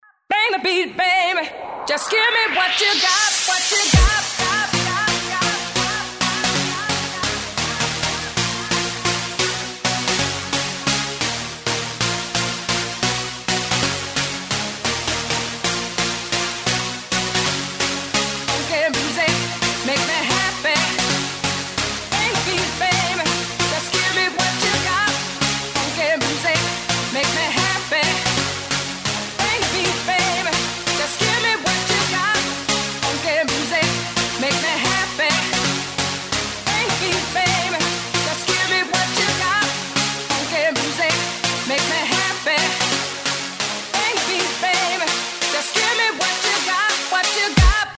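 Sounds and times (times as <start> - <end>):
electro mix: 0.3 - 47.9.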